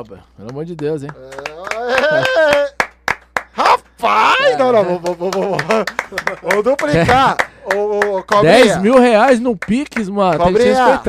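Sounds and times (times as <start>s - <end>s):
speech: 0.0s - 2.7s, 4.0s - 11.0s
hand claps: 0.4s - 4.0s, 4.7s - 11.0s
laughter: 1.2s - 2.8s, 4.2s - 7.4s
voiced exclamation: 1.2s - 2.8s, 3.6s - 5.4s.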